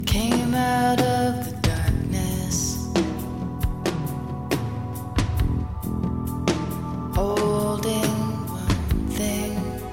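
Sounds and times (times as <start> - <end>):
music: 0.0 - 9.9.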